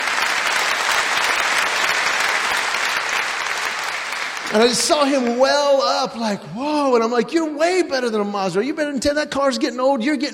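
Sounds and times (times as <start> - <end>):
audience applause: 0.0 - 6.0
speech: 4.5 - 10.3.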